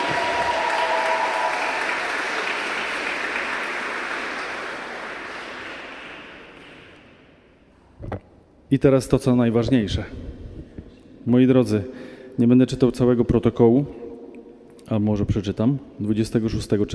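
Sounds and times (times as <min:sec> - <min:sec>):
audience applause: 0:00.0 - 0:07.1
speech: 0:08.7 - 0:10.4, 0:11.3 - 0:14.0, 0:14.9 - 0:16.9.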